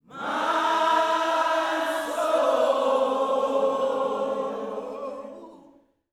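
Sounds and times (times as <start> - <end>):
gospel vocals: 0.0 - 6.0.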